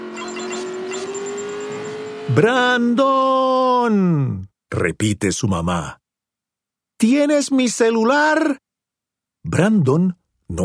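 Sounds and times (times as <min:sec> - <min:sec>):
thin high whine: 0:00.0 - 0:02.4
racing game car engine revving: 0:00.0 - 0:02.8
speech: 0:02.3 - 0:06.0, 0:07.0 - 0:08.6, 0:09.4 - 0:10.6.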